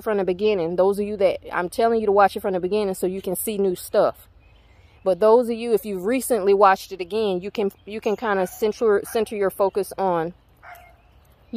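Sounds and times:
speech: 0.0 - 4.3, 5.0 - 10.4
dog barking: 10.6 - 11.0.

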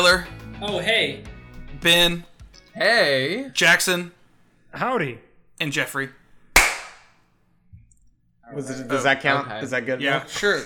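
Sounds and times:
speech: 0.0 - 6.2, 8.5 - 10.6
single hand clap for audio sync: 6.6 - 7.2.

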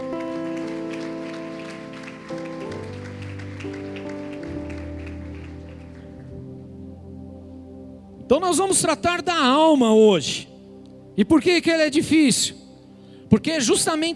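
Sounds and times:
audience applause: 0.0 - 6.4
sustained keyboard chords: 0.0 - 14.1
speech: 8.3 - 10.5, 11.2 - 12.6, 13.4 - 14.1.

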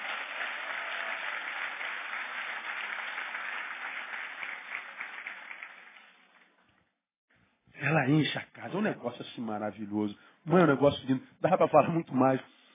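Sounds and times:
audience applauding: 0.0 - 6.6
speech: 7.9 - 12.6.

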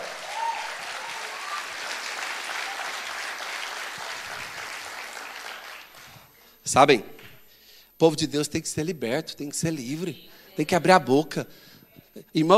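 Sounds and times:
audience clapping: 0.0 - 6.4
speech: 6.6 - 7.1, 8.0 - 12.5.

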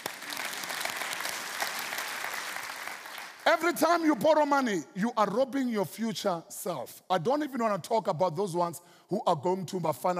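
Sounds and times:
audience clapping: 0.0 - 4.0
speech: 3.5 - 10.1.

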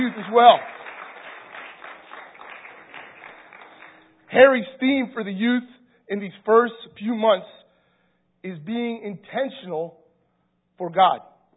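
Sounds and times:
speech: 0.0 - 0.8, 4.3 - 7.6, 8.4 - 10.0, 10.8 - 11.3
crowd applause: 0.0 - 4.3.

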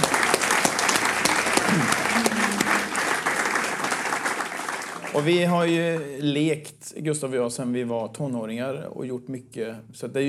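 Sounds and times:
crowd applauding: 0.0 - 6.4
speech: 5.2 - 10.2.

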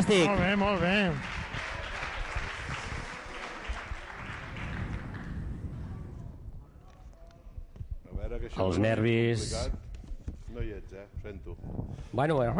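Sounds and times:
audience applause for nominees: 0.0 - 6.0
speech: 0.1 - 1.4, 8.3 - 9.8, 10.5 - 12.5.

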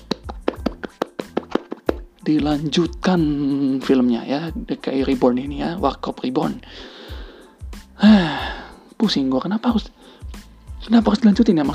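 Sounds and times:
hands clapping: 0.0 - 2.1
speech: 2.3 - 7.0, 8.0 - 8.4, 9.0 - 10.0, 10.8 - 11.7.

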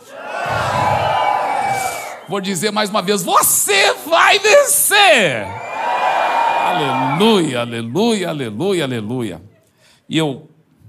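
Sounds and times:
audience shouting and cheering: 0.0 - 7.9
speech: 2.3 - 5.6, 6.7 - 9.5, 10.1 - 10.5.

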